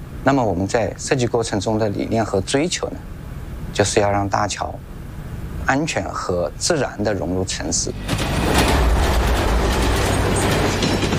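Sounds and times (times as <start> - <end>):
speech: 0.2 - 3.2, 3.8 - 4.9, 5.7 - 8.6
speeding train passing by on railway: 7.8 - 11.1.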